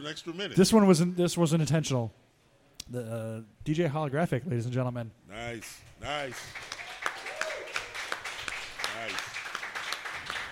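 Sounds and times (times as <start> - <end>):
speech: 0.0 - 2.3, 2.9 - 6.8
audience applause: 6.2 - 10.5.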